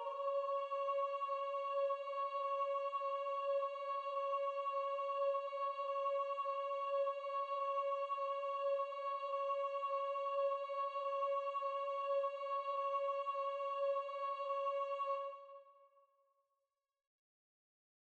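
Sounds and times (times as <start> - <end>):
sopranos singing: 0.0 - 15.3.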